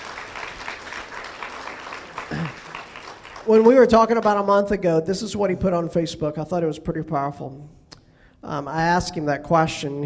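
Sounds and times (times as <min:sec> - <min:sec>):
audience hand clapping: 0:00.0 - 0:04.5
speech: 0:03.4 - 0:07.8, 0:08.4 - 0:10.0.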